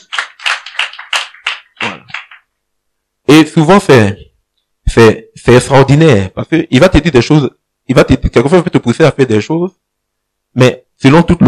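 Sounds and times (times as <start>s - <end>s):
church congregation clapping in unison to acclaim the Lord: 0.0s - 2.5s
speech: 3.3s - 4.3s, 5.0s - 9.9s, 10.6s - 11.4s.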